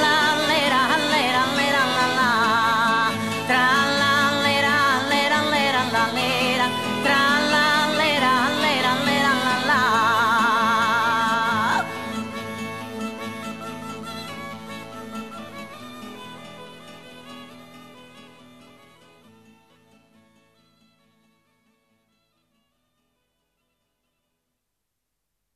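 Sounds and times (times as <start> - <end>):
trallalera singing of Campidanu: 0.0 - 13.8.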